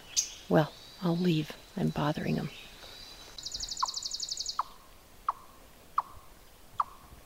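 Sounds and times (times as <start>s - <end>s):
speech: 0.5s - 2.7s
eastern chipmunk chipping call: 3.4s - 7.1s.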